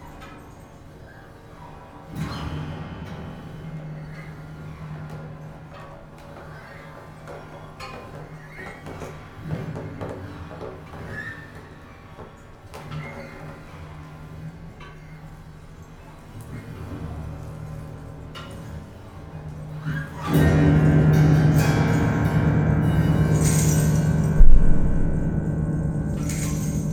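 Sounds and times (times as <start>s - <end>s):
soundscape: 20.2s - 26.9s.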